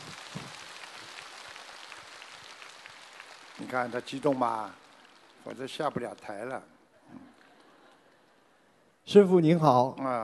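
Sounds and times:
audience applause: 0.0s - 6.6s, 7.2s - 8.6s
speech: 3.6s - 4.8s, 5.4s - 6.7s, 9.1s - 10.2s.

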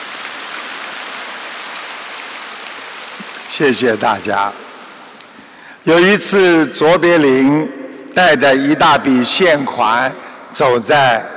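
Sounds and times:
audience applause: 0.0s - 5.1s
speech: 3.5s - 4.6s, 5.8s - 11.3s.

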